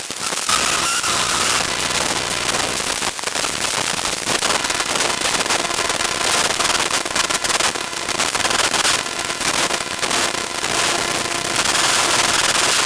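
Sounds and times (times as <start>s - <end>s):
MacBook Air laptop booting: 0.2s - 12.8s
coil whine on number 5 key: 0.2s - 12.8s.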